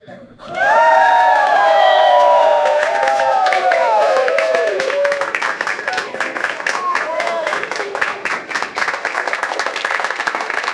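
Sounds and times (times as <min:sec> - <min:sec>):
applause: 0:00.6 - 0:10.7.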